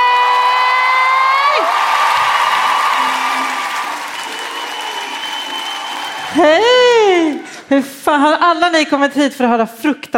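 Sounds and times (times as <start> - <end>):
audience applause: 0.0 - 7.6
speech: 7.7 - 10.1.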